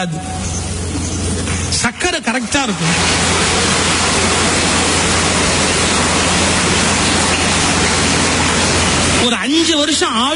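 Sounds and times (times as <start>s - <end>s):
speech: 0.0s - 1.1s, 1.8s - 4.4s, 9.2s - 10.3s
audience clapping hands: 2.6s - 9.2s.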